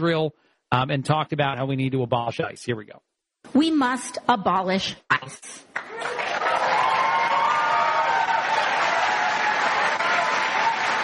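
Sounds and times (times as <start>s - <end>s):
speech: 0.0s - 6.2s
large crowd applauding: 5.8s - 11.0s.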